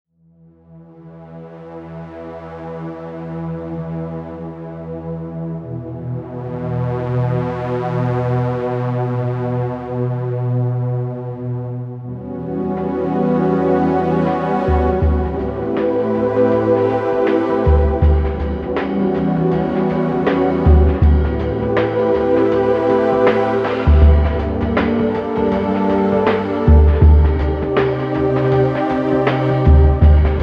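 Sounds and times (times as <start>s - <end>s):
soundtrack music: 0.9s - 30.4s.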